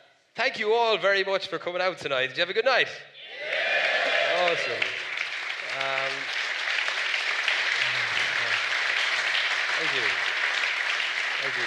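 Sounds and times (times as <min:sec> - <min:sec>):
speech: 0:00.4 - 0:03.5, 0:04.4 - 0:05.0, 0:05.8 - 0:06.4, 0:09.8 - 0:10.2, 0:11.4 - 0:11.6
audience applause: 0:03.4 - 0:11.6.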